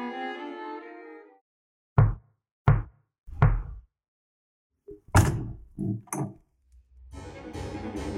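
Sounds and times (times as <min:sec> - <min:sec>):
knocking on a door: 0:02.0 - 0:03.8, 0:04.9 - 0:06.3
quick thumps and rattles: 0:02.7 - 0:03.8, 0:04.9 - 0:06.4.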